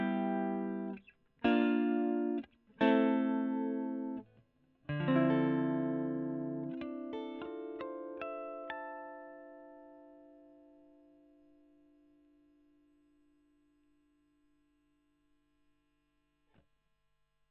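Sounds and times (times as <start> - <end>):
electric guitar: 0.0 - 12.3.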